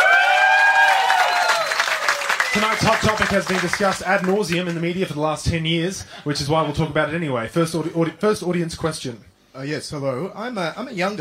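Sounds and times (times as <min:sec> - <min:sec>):
studio audience applause: 0:00.0 - 0:04.8
speech: 0:02.6 - 0:11.1.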